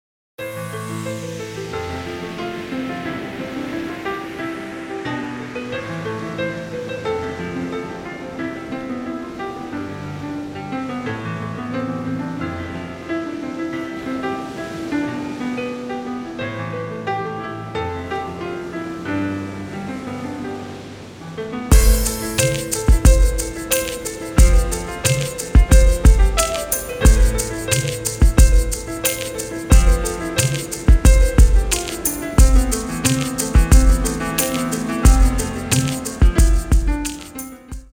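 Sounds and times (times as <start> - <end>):
chill music: 0.4 - 37.9.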